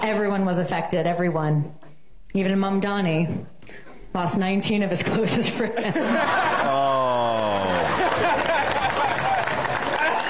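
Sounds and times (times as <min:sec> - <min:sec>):
speech: 0:00.0 - 0:07.0
laughter: 0:05.5 - 0:10.2
comedy club crowd applauding: 0:06.6 - 0:10.2.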